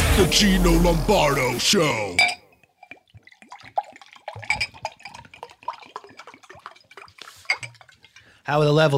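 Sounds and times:
speech: 0.2 - 2.4, 8.5 - 8.9
dishes clinking: 2.2 - 2.4, 7.4 - 7.8
water dripping and trickling: 2.2 - 8.9.

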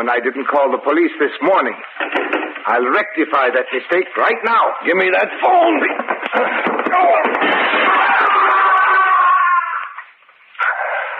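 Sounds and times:
speech: 0.0 - 7.9
person knocked crashing through a window: 5.5 - 9.7.

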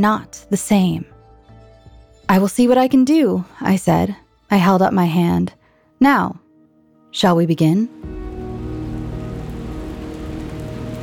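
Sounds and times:
speech: 0.0 - 1.1, 2.3 - 6.4, 7.1 - 8.1
rain falling: 7.9 - 11.0.

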